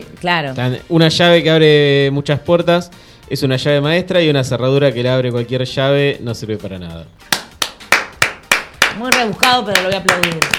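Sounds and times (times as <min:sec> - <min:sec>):
speech: 0:00.0 - 0:07.4, 0:09.0 - 0:10.5
sharp hand claps: 0:07.2 - 0:10.5.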